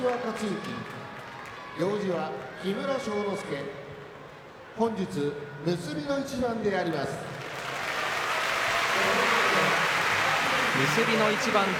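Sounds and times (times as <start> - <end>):
speech: 0.0 - 1.0, 1.8 - 3.8, 4.8 - 7.3, 10.8 - 11.7
arena audience applause: 7.4 - 11.7.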